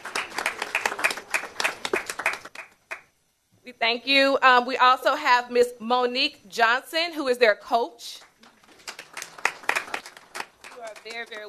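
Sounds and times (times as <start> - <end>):
audience applause: 0.0 - 3.0, 8.4 - 11.4
speech: 3.8 - 8.2, 11.1 - 11.4.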